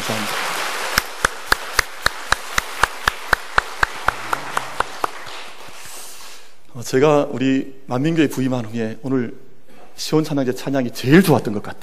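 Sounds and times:
scattered applause: 0:00.0 - 0:06.1
audience clapping in unison: 0:00.0 - 0:06.4
speech: 0:00.1 - 0:00.4, 0:06.8 - 0:11.8.

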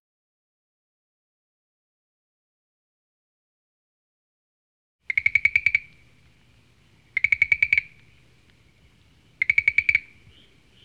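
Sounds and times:
frog calling: 0:05.1 - 0:06.2, 0:07.1 - 0:08.8, 0:09.4 - 0:10.8.

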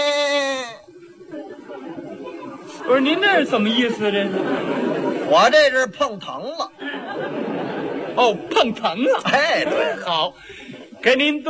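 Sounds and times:
voice imitating a goat bleating in a tongue-twister: 0:00.0 - 0:00.9
laughter: 0:00.0 - 0:11.4
speech: 0:02.9 - 0:11.4.

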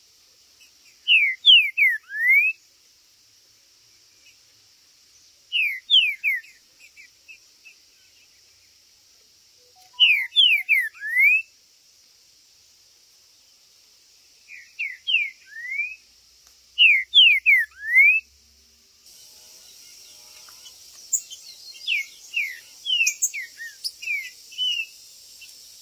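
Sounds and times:
green-winged saltator whistling song: 0:01.0 - 0:02.6, 0:05.5 - 0:06.5, 0:09.6 - 0:11.5, 0:14.5 - 0:16.1, 0:16.8 - 0:18.3, 0:21.1 - 0:25.8.

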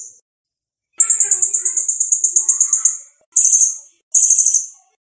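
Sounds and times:
Blue-crowned hanging parrot singing short thin very high trilled bursts: 0:01.0 - 0:04.5.

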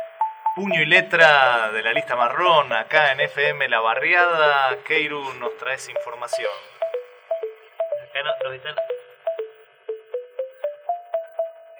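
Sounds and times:
mobile phone ringing: 0:00.0 - 0:11.7
speech: 0:00.6 - 0:06.8, 0:08.2 - 0:08.9.

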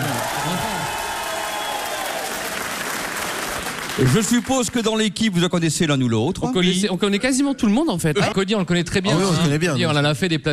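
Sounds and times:
crowd of spectators applauding at a morning gathering: 0:00.0 - 0:04.9
speech: 0:04.0 - 0:10.5.

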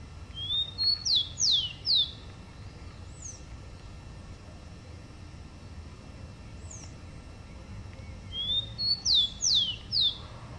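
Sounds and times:
rufous-collared sparrow singing: 0:00.3 - 0:03.4, 0:08.0 - 0:10.3.

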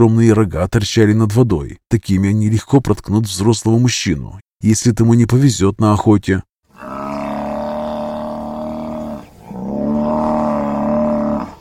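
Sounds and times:
speech: 0:00.0 - 0:07.2
giant buffalo bulls bellowing: 0:06.7 - 0:11.5.

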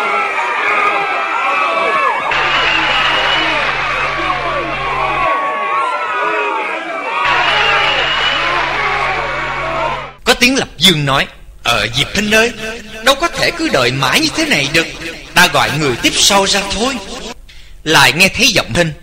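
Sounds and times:
crowd murmuring: 0:00.0 - 0:10.2
people whistling: 0:02.3 - 0:05.2, 0:07.3 - 0:10.0
speech: 0:10.4 - 0:17.2, 0:17.8 - 0:19.0.

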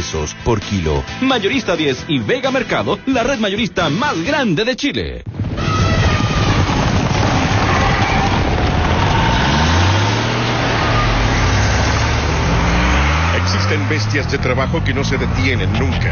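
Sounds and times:
speech: 0:00.0 - 0:05.4, 0:13.9 - 0:16.1
truck engine: 0:06.5 - 0:16.1.

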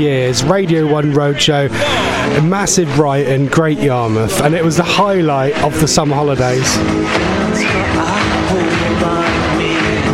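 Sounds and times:
speech: 0:00.0 - 0:08.4
crowd clapping along at outdoor roadshow: 0:05.2 - 0:10.1.

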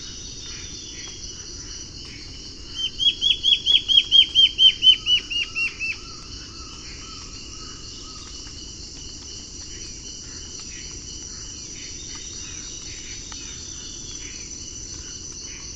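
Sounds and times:
Black-faced antbird Myrmoborus myotherinus ochrolaemus calling: 0:02.8 - 0:06.0.

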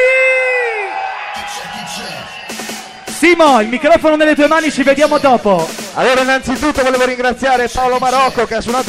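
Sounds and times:
crowd whooping a welcome for a DJ: 0:00.0 - 0:05.3
crowd cheering and shouting: 0:00.0 - 0:08.8
speech: 0:03.2 - 0:08.8.

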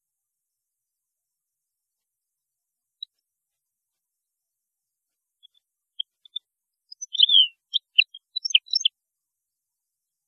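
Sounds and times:
European goldfinch singing twitters: 0:05.4 - 0:08.9.

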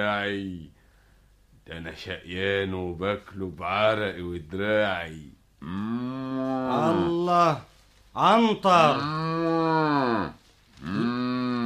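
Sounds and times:
speech: 0:00.0 - 0:00.8, 0:01.7 - 0:09.5, 0:10.3 - 0:11.2
ox mooing: 0:05.6 - 0:07.1, 0:08.9 - 0:11.6.

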